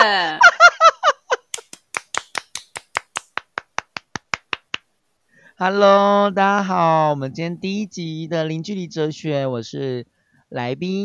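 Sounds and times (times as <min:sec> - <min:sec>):
giggling laughter: 0:00.0 - 0:01.8
hand claps: 0:01.4 - 0:04.9
speech: 0:05.6 - 0:11.0.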